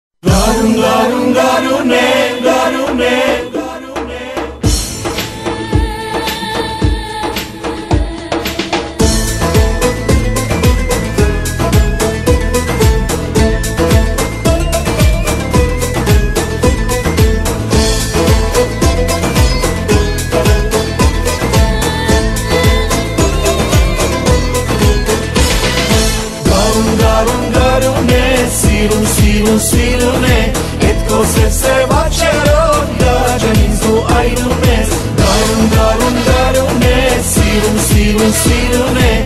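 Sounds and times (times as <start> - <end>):
Armenian music: 0.2 - 39.2.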